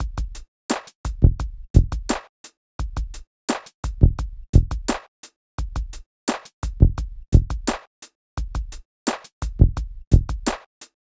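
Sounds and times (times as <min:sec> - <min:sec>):
hip hop drums: 0:00.0 - 0:02.2, 0:02.8 - 0:05.0, 0:05.6 - 0:07.8, 0:08.4 - 0:10.7.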